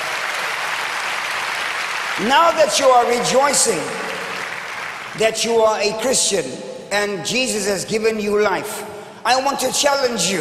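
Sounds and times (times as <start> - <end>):
audience clapping hands: 0.0 - 6.1
speech: 2.2 - 4.3, 5.2 - 10.3.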